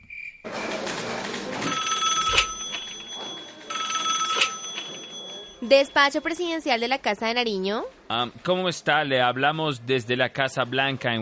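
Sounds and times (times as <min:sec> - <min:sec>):
telephone ringing: 0:01.6 - 0:06.9
speech: 0:05.6 - 0:11.2.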